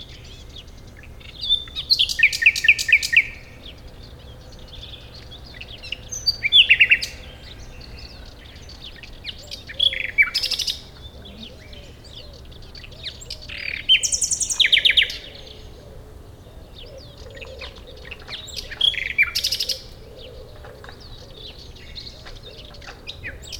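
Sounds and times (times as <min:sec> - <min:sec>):
Common nightingale Luscinia megarhynchos song: 0:00.0 - 0:23.5.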